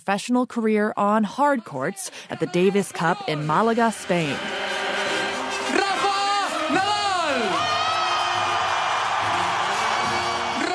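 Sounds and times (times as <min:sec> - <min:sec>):
speech: 0:00.0 - 0:04.7
large home crowd cheering: 0:02.9 - 0:10.7
whoops and shouts from crowd: 0:06.4 - 0:10.7.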